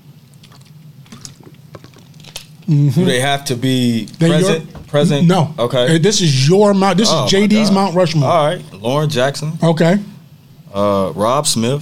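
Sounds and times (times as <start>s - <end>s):
steady low hum: 0.0s - 11.8s
person drinking water with sips and sloshing: 0.3s - 2.7s
speech: 2.7s - 10.1s, 10.7s - 11.8s.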